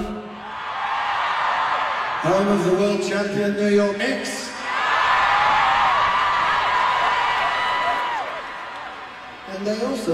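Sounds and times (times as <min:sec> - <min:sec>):
concert crowd cheering and screaming: 0:00.2 - 0:02.5, 0:04.6 - 0:09.8
speech: 0:02.2 - 0:04.4, 0:09.7 - 0:10.1.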